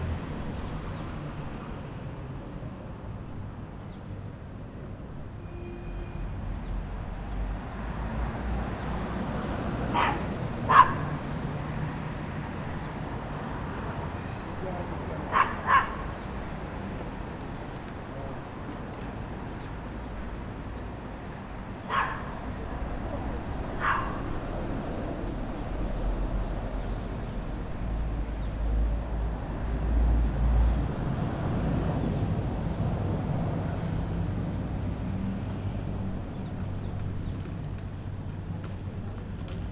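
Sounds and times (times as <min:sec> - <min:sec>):
bus on a small city main street: 0:00.0 - 0:39.7.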